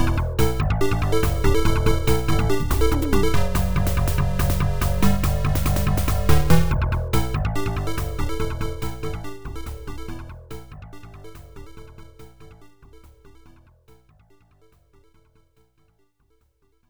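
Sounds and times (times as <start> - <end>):
stage clear game background music: 0.0 - 10.2.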